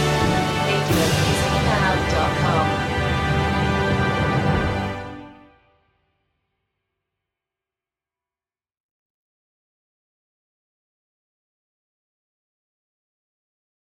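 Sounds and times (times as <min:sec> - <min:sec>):
instrumental national anthem without choir: 0:00.0 - 0:05.8.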